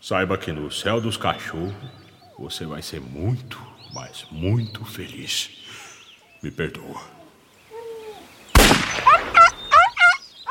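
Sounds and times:
speech: 0:00.0 - 0:05.8, 0:06.4 - 0:07.2
gunshot: 0:08.6 - 0:09.4.

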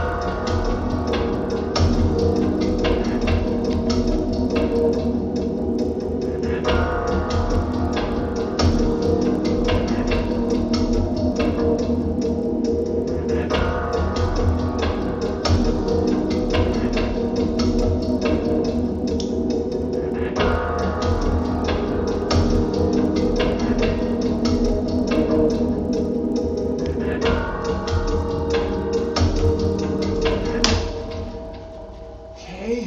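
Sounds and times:
ticking sound in a music track: 0:00.0 - 0:31.7.

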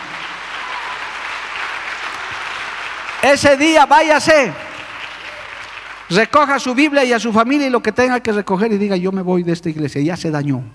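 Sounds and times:
audience applause: 0:00.0 - 0:06.7
speech: 0:03.2 - 0:04.6, 0:06.1 - 0:10.7.

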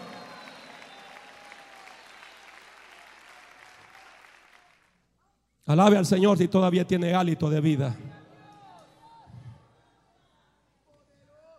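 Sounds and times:
audience applause: 0:00.0 - 0:04.9
speech: 0:05.7 - 0:08.1.

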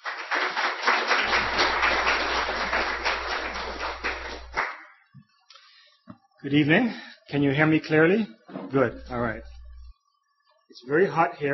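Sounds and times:
audience applause: 0:00.0 - 0:04.9
low hum: 0:01.2 - 0:10.9
speech: 0:06.4 - 0:09.5, 0:10.8 - 0:11.5.

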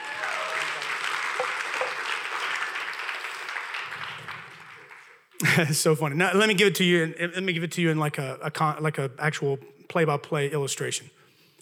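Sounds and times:
audience clapping hands: 0:00.0 - 0:05.3
speech: 0:05.4 - 0:11.2.

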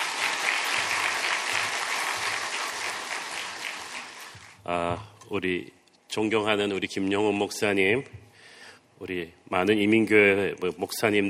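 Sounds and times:
audience applauding: 0:00.0 - 0:04.6
speech: 0:04.7 - 0:08.2, 0:09.0 - 0:11.2.

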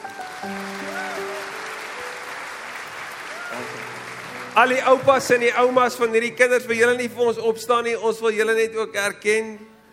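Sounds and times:
sustained applause from a crowd: 0:00.0 - 0:06.1
speech: 0:04.6 - 0:09.9.

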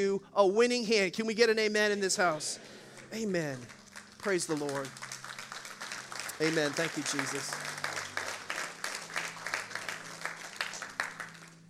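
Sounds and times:
speech: 0:00.0 - 0:05.1, 0:06.4 - 0:07.7
sympathy clap: 0:02.8 - 0:11.6.

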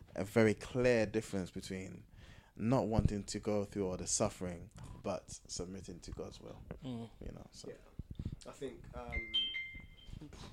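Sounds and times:
speech: 0:00.2 - 0:09.5, 0:10.2 - 0:10.5
phone ringing in the room with a thin high electronic tone: 0:09.1 - 0:10.2.

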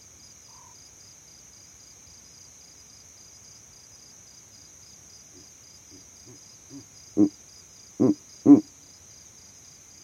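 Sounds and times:
constant high-pitched insect drone: 0:00.0 - 0:10.0
Verreaux's eagle owl hooting: 0:06.3 - 0:07.3, 0:08.0 - 0:08.6.

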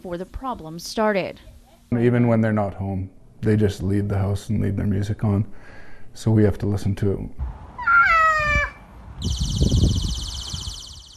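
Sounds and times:
speech: 0:00.0 - 0:07.6
cat meowing: 0:07.8 - 0:08.8
shrill steady high-pitched alarm tone: 0:09.2 - 0:11.1.

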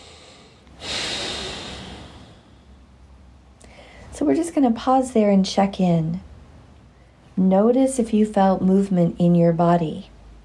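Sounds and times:
big deep breath during a calming thumb-tapping exercise: 0:00.0 - 0:03.0, 0:03.6 - 0:04.1
speech: 0:04.2 - 0:06.3, 0:07.4 - 0:10.1.

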